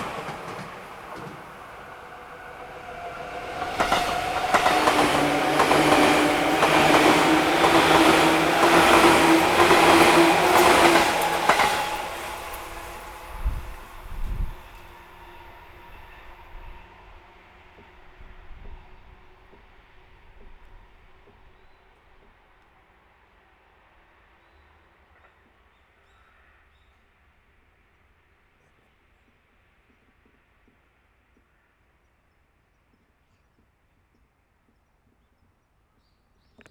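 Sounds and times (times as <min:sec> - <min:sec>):
train passing on a curve: 0:00.0 - 0:25.9.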